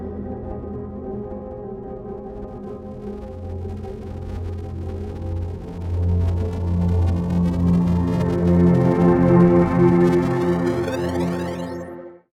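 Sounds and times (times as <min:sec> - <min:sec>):
granular synth riser pad: 0:03.0 - 0:12.1.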